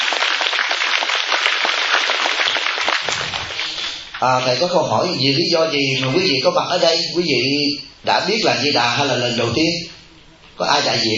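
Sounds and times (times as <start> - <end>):
audience applause: 0.0 - 4.2
speech: 4.2 - 10.0, 10.6 - 11.1.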